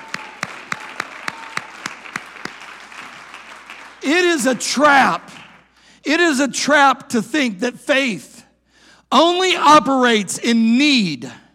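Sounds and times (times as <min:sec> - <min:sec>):
audience clapping: 0:00.0 - 0:05.8
speech: 0:04.0 - 0:05.4, 0:06.0 - 0:08.3, 0:09.1 - 0:11.4.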